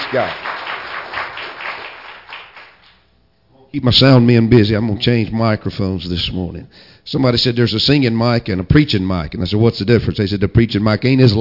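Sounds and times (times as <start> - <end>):
crowd clapping hands in praise: 0.0 - 3.1
speech: 0.1 - 0.4, 3.7 - 11.3.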